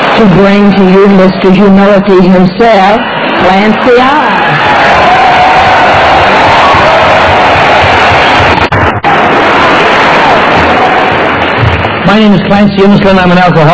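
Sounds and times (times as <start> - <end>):
crowd applauding: 0.0 - 1.5, 2.9 - 13.7
speech: 0.2 - 4.6, 12.1 - 13.7
crowd cheering with whoops and shouts: 4.2 - 11.3.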